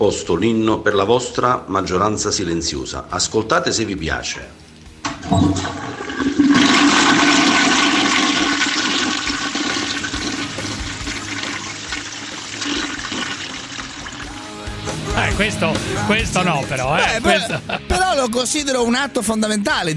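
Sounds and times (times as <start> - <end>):
speech: 0.0 - 4.6, 5.2 - 6.4, 15.4 - 19.9
toilet flushing: 5.1 - 14.4
laughter: 16.7 - 18.3.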